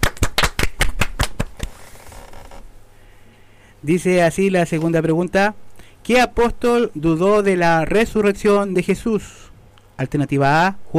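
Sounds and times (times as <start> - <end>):
sharp evenly spaced hand claps: 0.0 - 1.7
speech: 3.8 - 10.9.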